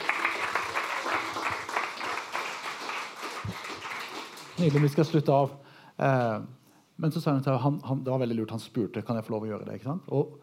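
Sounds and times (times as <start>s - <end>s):
audience applause: 0.0s - 5.2s
speech: 4.6s - 10.4s.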